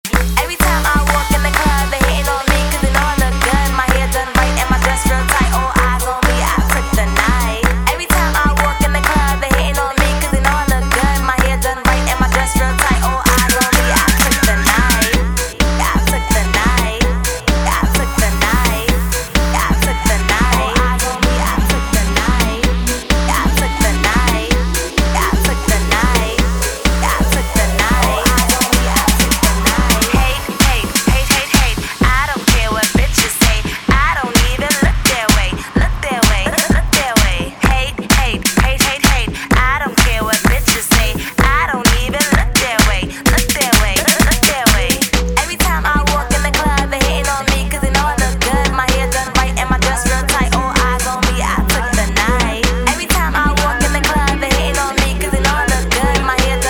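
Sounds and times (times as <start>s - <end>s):
classic party music mashup: 0.0s - 56.6s.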